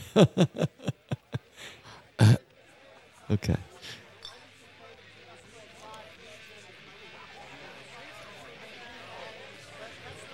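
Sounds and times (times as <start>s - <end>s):
laughter: 0.0s - 2.4s, 3.3s - 4.0s
speech: 0.2s - 0.8s, 3.3s - 4.0s
harsh throaty coughs: 2.2s - 2.4s.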